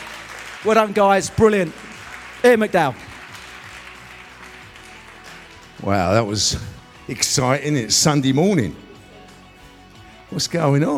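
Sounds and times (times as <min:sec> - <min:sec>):
crowd clapping: 0:00.0 - 0:06.0
speech: 0:00.6 - 0:03.1, 0:05.8 - 0:08.8, 0:10.3 - 0:10.9.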